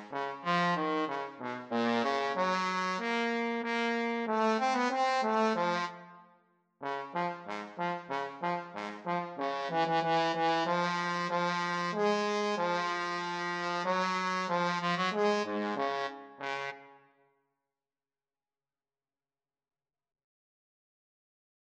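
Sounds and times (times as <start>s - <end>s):
trombone duet: 0.0s - 6.0s, 6.8s - 16.8s.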